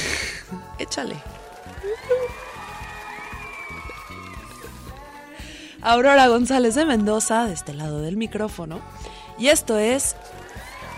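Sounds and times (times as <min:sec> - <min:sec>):
speech: 0:00.8 - 0:02.5, 0:05.8 - 0:10.4
applause: 0:01.0 - 0:05.2, 0:09.8 - 0:10.9.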